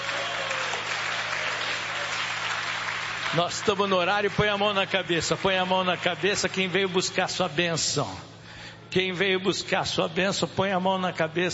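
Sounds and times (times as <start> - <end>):
audience clapping hands: 0.0 - 7.0
speech: 3.3 - 8.3, 8.9 - 11.5.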